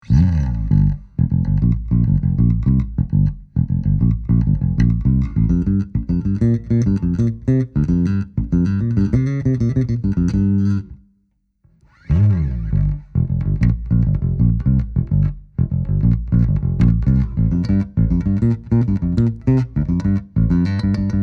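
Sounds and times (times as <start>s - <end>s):
bass: 0.0s - 21.2s.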